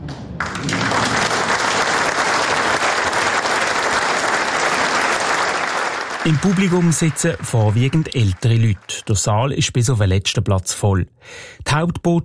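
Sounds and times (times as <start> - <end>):
audience applauding with relief: 0.4 - 9.3
speech: 6.3 - 12.2.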